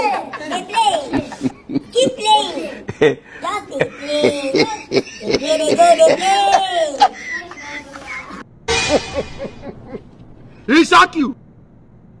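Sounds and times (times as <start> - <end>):
laughter: 0.0 - 10.2
comedy sound effect: 8.2 - 10.2.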